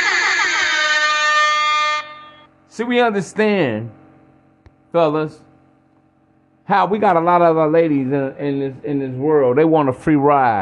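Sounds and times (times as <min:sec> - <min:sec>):
air horn alarm sound effect: 0:00.0 - 0:02.5
speech: 0:02.8 - 0:04.0, 0:04.9 - 0:05.4, 0:06.7 - 0:10.6.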